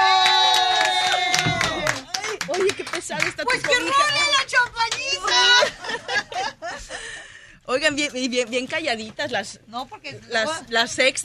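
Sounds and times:
applause and cheering: 0.0s - 5.5s
speech: 3.2s - 4.3s, 7.7s - 11.2s
laughter: 5.2s - 7.3s.

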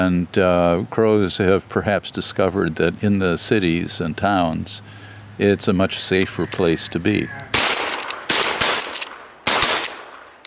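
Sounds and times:
speech: 0.0s - 7.4s
gunshots from a crow hunt video: 7.5s - 10.4s.

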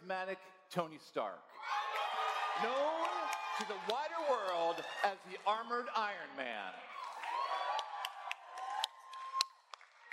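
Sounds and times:
speech: 0.1s - 1.8s, 2.6s - 6.9s
audience clapping close to a microphone: 1.9s - 5.5s, 7.0s - 10.1s.

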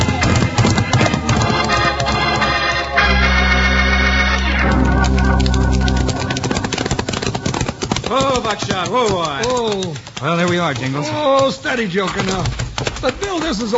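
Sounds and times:
horses galloping, hooves clip-clopping: 0.0s - 13.7s
steady low rumble: 1.3s - 7.7s
speech: 8.5s - 13.7s.

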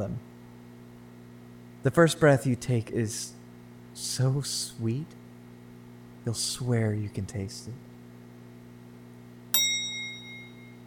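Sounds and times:
speech: 0.0s - 0.3s, 1.8s - 3.4s, 4.0s - 5.2s, 6.2s - 7.9s
timer bell ringing: 9.6s - 10.8s.

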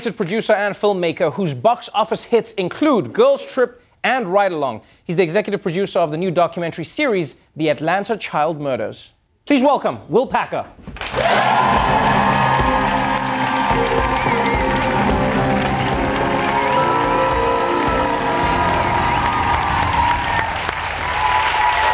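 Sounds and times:
speech: 0.0s - 12.1s
studio audience applauding and cheering: 11.0s - 21.9s.

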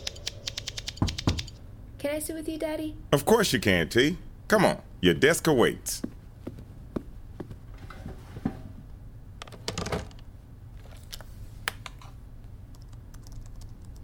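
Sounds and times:
typing on a computer keyboard at a desk: 0.0s - 1.6s, 12.7s - 14.0s
speech: 2.0s - 6.1s.

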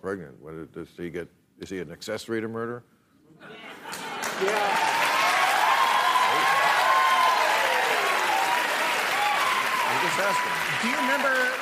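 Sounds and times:
speech: 0.0s - 3.7s, 4.4s - 5.1s, 10.0s - 11.5s
crowd clapping: 3.9s - 11.5s
whoops and cheering voices: 4.4s - 11.5s.

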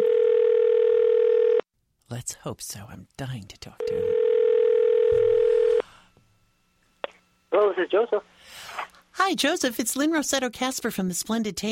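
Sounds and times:
telephone ringback tone: 0.0s - 1.6s, 3.9s - 5.8s
speech: 2.1s - 4.3s, 7.8s - 8.6s, 9.2s - 11.7s.

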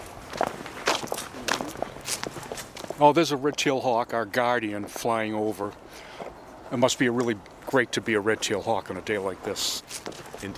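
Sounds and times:
footsteps walking down stairs: 0.0s - 3.0s
speech: 3.0s - 6.1s, 6.7s - 10.5s.

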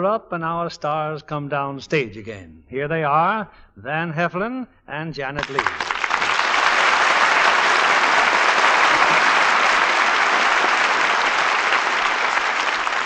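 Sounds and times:
speech: 0.0s - 5.9s
studio audience applause: 5.4s - 13.0s.

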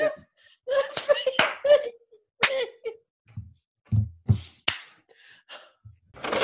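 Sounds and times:
bursts of laughter: 0.0s - 3.0s
hand claps: 1.0s - 1.6s, 4.6s - 5.0s.

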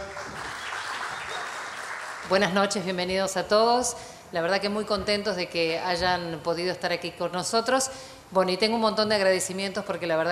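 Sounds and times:
audience applause: 0.0s - 2.3s
speech: 2.2s - 10.3s.

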